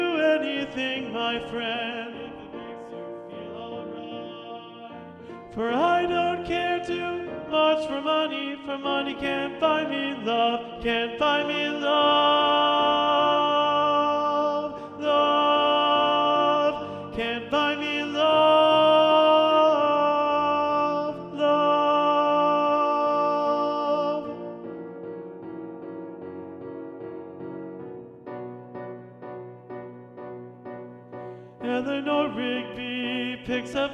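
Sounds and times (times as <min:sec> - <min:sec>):
alto section of SATB choir singing: 0:00.0 - 0:25.0, 0:31.3 - 0:33.9.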